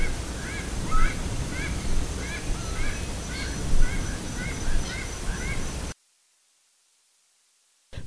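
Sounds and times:
faint bird chirps: 0.0s - 6.0s.

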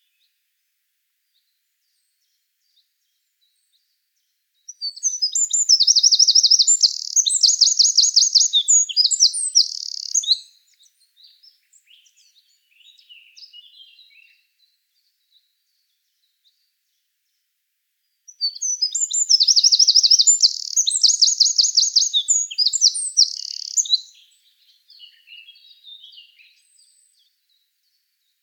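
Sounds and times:
Eurasian wren singing: 4.7s - 14.2s, 18.3s - 27.2s.

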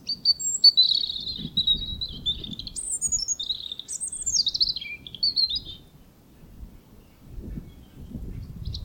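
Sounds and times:
European robin Erithacus rubecula song: 0.0s - 8.8s.

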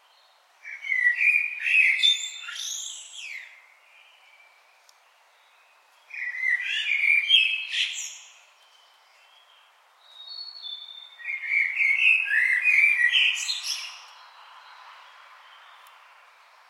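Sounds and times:
common blackbird song: 0.0s - 16.6s.

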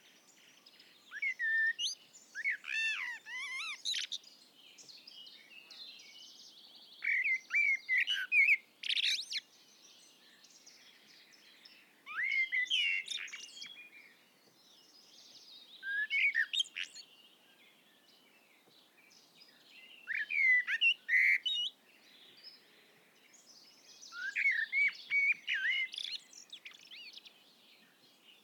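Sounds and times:
common blackbird fluty whistled song: 0.0s - 28.4s.

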